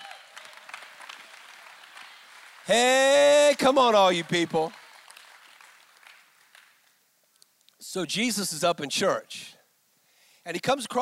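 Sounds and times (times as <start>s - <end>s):
audience clapping: 0.0s - 7.0s
speech: 2.7s - 4.8s, 7.9s - 9.6s, 10.4s - 11.0s.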